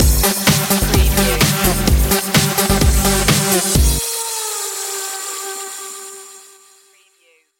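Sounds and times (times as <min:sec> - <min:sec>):
club breakbeat stinger: 0:00.0 - 0:03.7.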